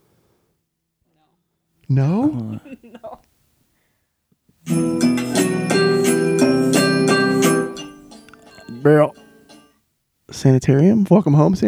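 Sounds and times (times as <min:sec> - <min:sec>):
speech: 0:01.9 - 0:03.3, 0:08.8 - 0:09.2, 0:10.3 - 0:11.6
bell ringing at start of song: 0:04.7 - 0:09.7.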